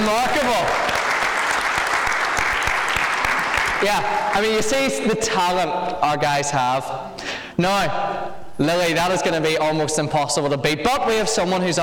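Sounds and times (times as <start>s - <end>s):
round of applause: 0.0s - 4.7s
speech: 0.1s - 0.6s, 3.8s - 11.8s.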